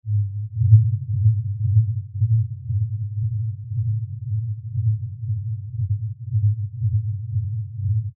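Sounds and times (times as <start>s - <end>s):
105 Hz tone: 0.1s - 8.1s.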